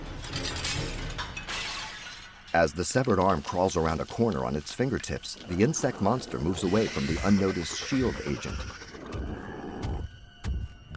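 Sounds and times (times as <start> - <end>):
stack of dinner plates tipping over and shattering: 0.0 - 3.5
speech: 2.6 - 9.2.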